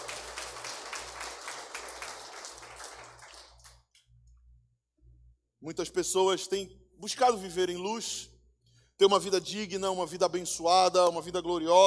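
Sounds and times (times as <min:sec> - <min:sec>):
audience applause: 0:00.0 - 0:03.8
speech: 0:05.6 - 0:08.3, 0:09.0 - 0:11.8.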